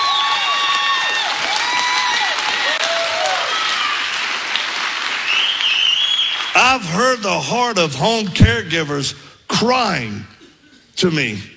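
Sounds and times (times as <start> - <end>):
audience applause: 0.0 - 7.0
speech: 6.7 - 10.3, 11.0 - 11.5.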